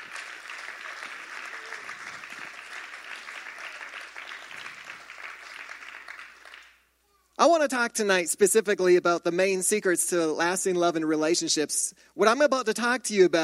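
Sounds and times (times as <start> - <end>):
audience clapping to show appreciation: 0.0 - 6.9
speech: 7.4 - 13.4.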